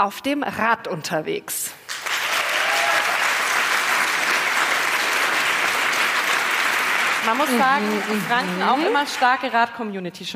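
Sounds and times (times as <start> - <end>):
speech: 0.0 - 2.1, 7.2 - 10.3
audience clapping: 1.8 - 9.8.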